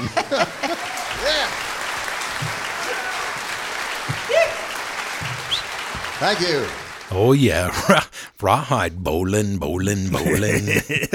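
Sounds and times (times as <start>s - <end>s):
laughter: 0.0s - 4.7s, 7.4s - 11.1s
hands clapping: 0.0s - 7.2s
speech: 0.3s - 0.6s, 6.2s - 11.1s.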